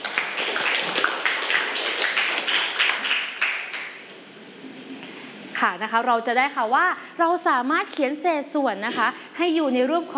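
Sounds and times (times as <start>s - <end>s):
classroom applause: 0.0s - 4.1s
speech: 5.6s - 10.1s.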